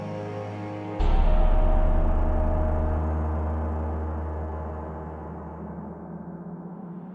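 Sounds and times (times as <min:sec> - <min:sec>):
user interface sound loop: 0:01.0 - 0:05.6.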